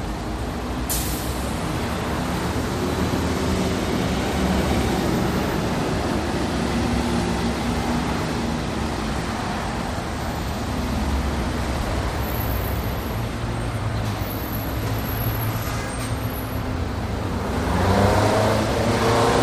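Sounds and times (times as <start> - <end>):
big city traffic gridlock: 0.2 - 19.4.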